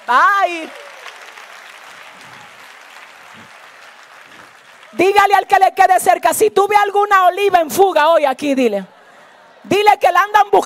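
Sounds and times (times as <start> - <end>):
audience applause: 0.0 - 5.4
speech: 0.1 - 0.9, 4.9 - 8.9, 9.6 - 10.6.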